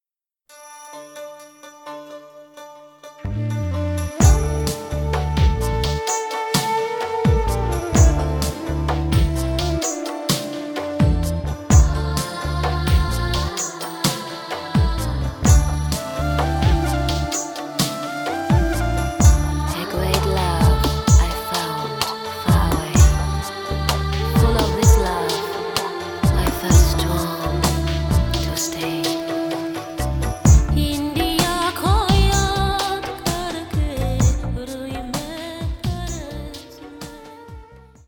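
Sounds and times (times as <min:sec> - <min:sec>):
Indian ballad: 0:03.2 - 0:38.0.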